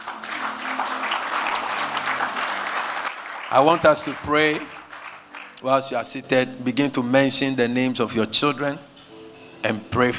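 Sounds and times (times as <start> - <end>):
audience clapping: 0.0 - 5.7
speech: 3.5 - 4.8, 5.6 - 8.9, 9.6 - 10.1.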